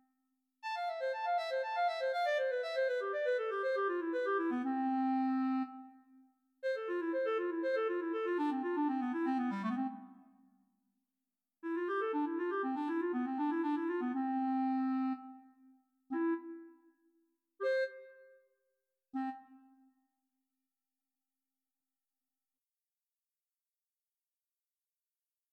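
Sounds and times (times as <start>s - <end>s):
solo clarinet: 0.6s - 10.4s, 11.6s - 20.0s.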